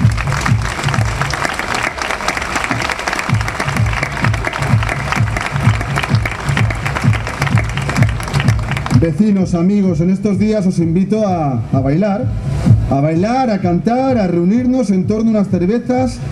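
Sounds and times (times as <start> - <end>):
audience applause: 0.0 - 9.0
speech: 9.1 - 16.3.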